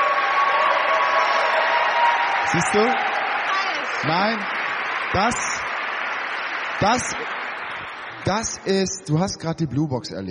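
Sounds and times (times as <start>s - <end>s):
crowd applause: 0.0s - 9.5s
speech: 2.5s - 3.1s, 4.0s - 5.6s, 6.8s - 7.4s, 8.3s - 10.2s.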